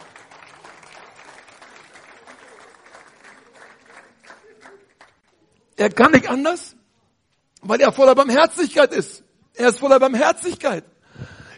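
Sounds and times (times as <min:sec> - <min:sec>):
audience applause: 0:00.0 - 0:05.4
speech: 0:05.8 - 0:06.8, 0:07.7 - 0:11.0.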